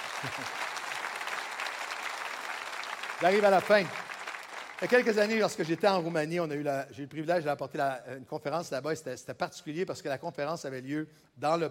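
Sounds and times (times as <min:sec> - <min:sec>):
audience applauding at a Christian gathering: 0:00.0 - 0:06.1
speech: 0:00.2 - 0:00.6, 0:03.2 - 0:04.0, 0:04.8 - 0:11.6.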